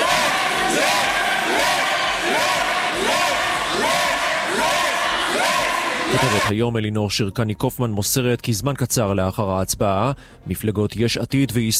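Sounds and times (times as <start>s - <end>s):
parliament opposition members shouting at prime minister: 0.0s - 6.5s
speech: 6.4s - 11.7s.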